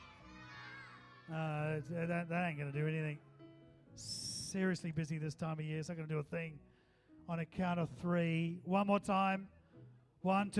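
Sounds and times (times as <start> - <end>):
group of people yelling a name in unison: 0.0 - 1.3
speech: 1.3 - 3.3, 4.0 - 6.7, 7.3 - 9.6, 10.2 - 10.5.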